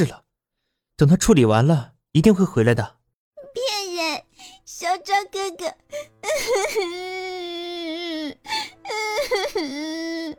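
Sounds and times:
speech: 0.0s - 0.2s, 1.0s - 3.0s, 4.8s - 7.6s, 8.4s - 10.3s
young child crying and sobbing: 3.4s - 10.3s.

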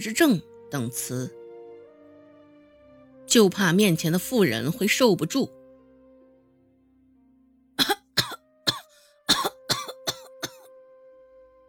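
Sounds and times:
speech: 0.0s - 1.4s, 3.3s - 5.6s
child lying in bed coughing: 7.8s - 10.7s.

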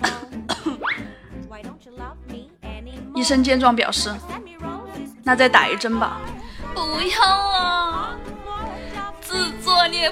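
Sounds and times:
person coughing deliberately: 0.0s - 0.8s
speech: 3.2s - 4.3s, 5.3s - 6.3s, 7.0s - 7.7s.

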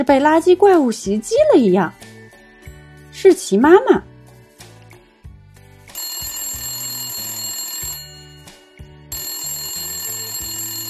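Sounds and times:
speech: 0.0s - 2.0s, 3.2s - 4.1s
electronic phone ringing: 5.8s - 10.8s.

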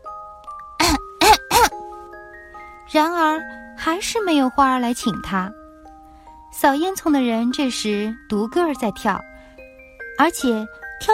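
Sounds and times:
deliberate coughing: 0.8s - 1.8s
speech: 2.9s - 5.6s, 6.6s - 9.3s, 10.2s - 11.1s.

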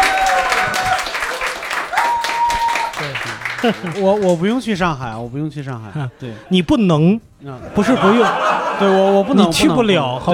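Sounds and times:
dense applause from a small crowd: 0.0s - 4.6s
laughter: 3.0s - 4.4s, 7.5s - 10.3s
speech: 3.6s - 10.3s.

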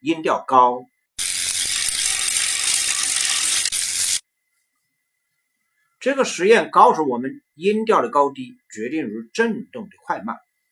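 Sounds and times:
speech: 0.0s - 0.9s, 6.0s - 10.5s
spinning bicycle wheel ratcheting: 1.2s - 4.2s.

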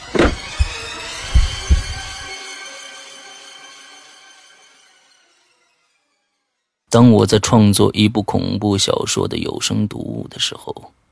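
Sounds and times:
heartbeat sound effect: 0.2s - 2.3s
speech: 6.9s - 11.0s.

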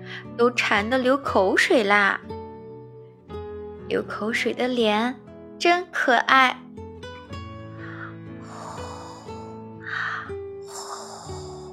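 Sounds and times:
speech: 0.3s - 2.3s, 3.9s - 6.6s
child snoring while asleep: 8.5s - 11.7s.

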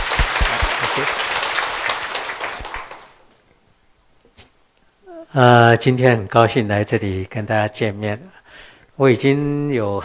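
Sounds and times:
audience applause: 0.0s - 3.2s
speech: 1.0s - 1.3s, 5.3s - 8.4s, 9.0s - 10.0s.

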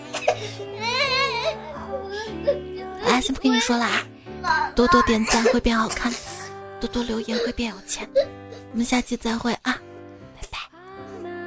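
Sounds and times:
baby crying: 0.0s - 6.5s
speech: 0.4s - 0.9s, 2.3s - 9.8s.

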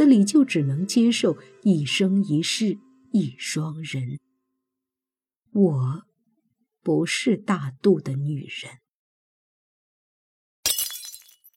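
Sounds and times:
speech: 0.0s - 4.3s, 5.5s - 6.1s, 6.8s - 8.8s
porcelain bottle shattering on floor: 10.6s - 11.5s.

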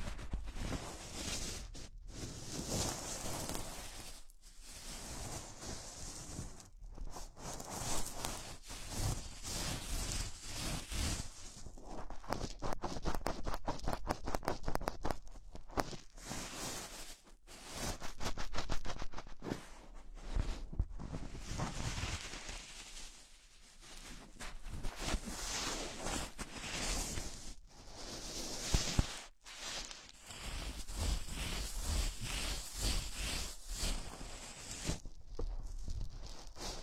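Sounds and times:
gloves rubbing and crinkling: 0.0s - 36.8s.

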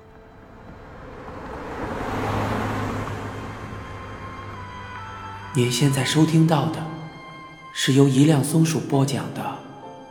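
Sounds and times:
car driving past: 0.0s - 5.6s
speech: 5.5s - 7.0s, 7.8s - 9.6s.

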